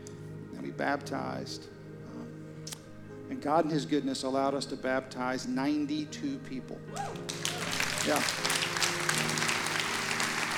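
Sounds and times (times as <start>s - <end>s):
speech: 0.8s - 1.8s, 3.3s - 8.6s
audience clapping: 7.0s - 10.5s.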